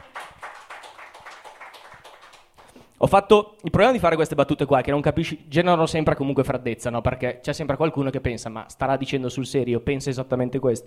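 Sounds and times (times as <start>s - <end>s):
audience applause: 0.0s - 2.8s
speech: 3.0s - 10.8s.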